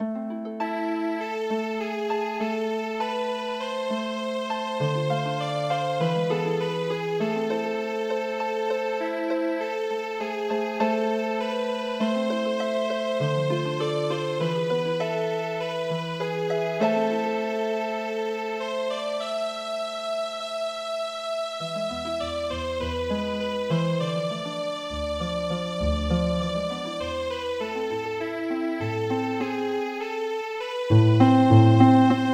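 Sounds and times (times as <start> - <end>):
MIDI healing harp music: 0.0 - 32.3.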